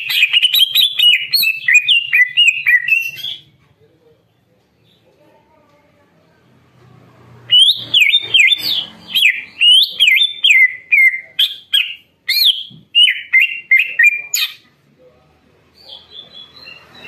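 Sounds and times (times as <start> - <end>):
leafbird song with sharp varied whistled phrases: 0.0 - 3.5, 7.5 - 14.6.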